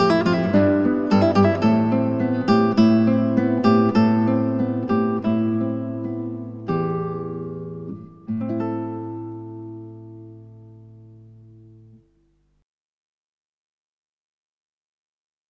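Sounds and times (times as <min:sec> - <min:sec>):
etude ballad: 0:00.0 - 0:11.9.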